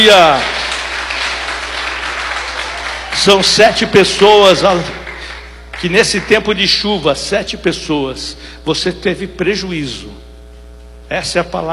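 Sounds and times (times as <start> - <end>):
speech: 0.0 - 0.6, 3.2 - 5.0, 5.8 - 10.2, 11.1 - 11.7
church congregation clapping hands during a worship service: 0.0 - 6.8.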